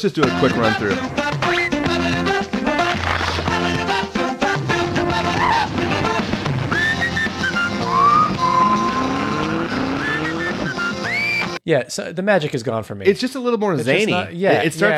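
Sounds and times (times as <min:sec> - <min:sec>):
speech: 0:00.0 - 0:01.3, 0:11.7 - 0:14.9
cartoon theme song: 0:00.2 - 0:11.4
whistling in a cartoon theme song: 0:01.4 - 0:02.0, 0:06.7 - 0:11.6.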